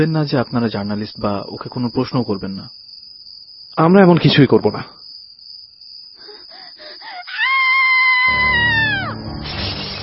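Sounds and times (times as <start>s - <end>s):
speech: 0.0s - 2.8s, 3.8s - 5.0s
woman screaming: 6.3s - 9.2s.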